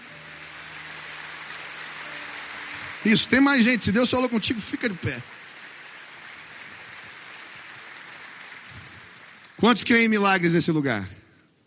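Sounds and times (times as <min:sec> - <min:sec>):
audience applauding: 0:00.0 - 0:11.1
speech: 0:03.0 - 0:05.4, 0:09.6 - 0:11.6.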